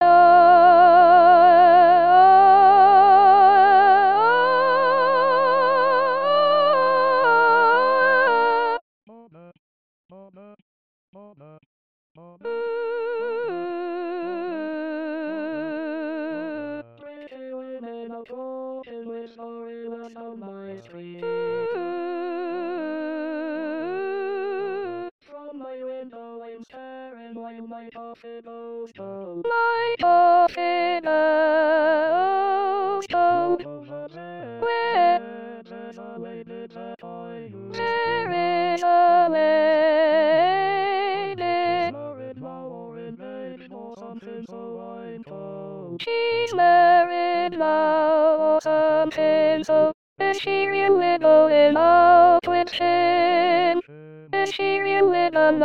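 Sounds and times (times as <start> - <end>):
soprano singing: 0.0 - 8.8, 12.4 - 16.9, 21.2 - 25.1, 29.4 - 45.3, 45.9 - 53.8, 54.4 - 55.6.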